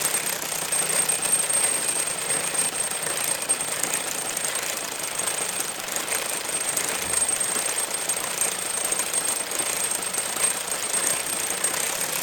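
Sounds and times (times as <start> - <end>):
jackhammer running without contact: 0.0 - 12.2.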